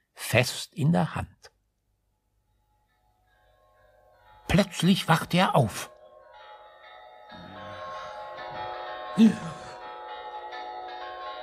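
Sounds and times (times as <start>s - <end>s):
speech: 0.3s - 1.4s, 4.6s - 5.9s, 9.2s - 9.6s
church bells ringing for Christmas service: 3.4s - 11.4s.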